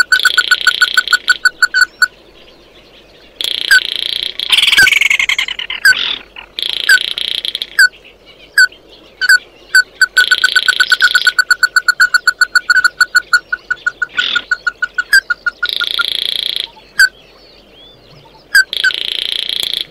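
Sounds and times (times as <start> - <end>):
bird calls: 0.0 - 19.9.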